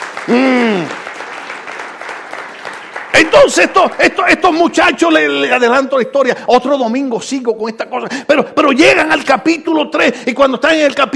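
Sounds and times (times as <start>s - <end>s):
audience applause: 0.0s - 4.6s
speech: 0.2s - 1.0s, 3.2s - 11.1s.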